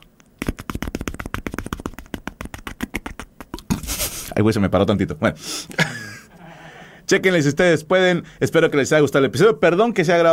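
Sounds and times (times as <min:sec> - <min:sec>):
rustling noise: 0:00.0 - 0:04.4
helicopter imitated with cupped hands: 0:00.4 - 0:04.4
speech: 0:04.4 - 0:06.0, 0:07.1 - 0:10.3
laughter: 0:05.8 - 0:06.4.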